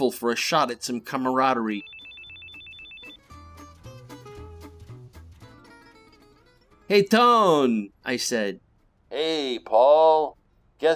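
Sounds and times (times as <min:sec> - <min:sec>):
speech: 0:00.0 - 0:02.0, 0:06.9 - 0:10.9
phone ringtone for an incoming call: 0:01.7 - 0:03.4.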